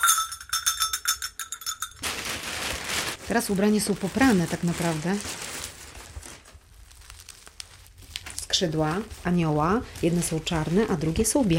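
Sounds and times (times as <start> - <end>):
real mountain bells ringing: 0.0 - 2.0
speech: 3.3 - 5.5, 8.6 - 11.5.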